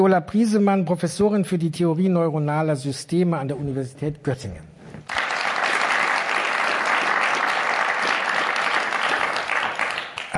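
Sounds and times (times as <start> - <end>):
speech: 0.0 - 5.2
audience applause: 5.1 - 10.3.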